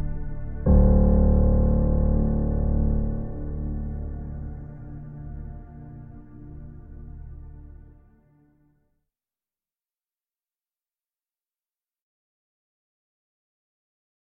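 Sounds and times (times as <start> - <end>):
instrumental music: 0.0 - 8.5.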